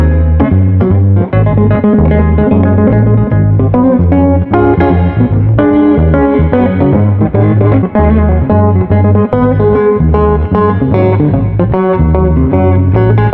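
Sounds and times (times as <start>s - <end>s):
jazz funk guitar: 0.0s - 13.3s.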